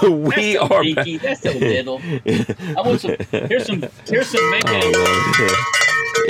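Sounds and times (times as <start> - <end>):
laughter: 0.0 - 6.2
cowbell being handled: 4.1 - 6.2.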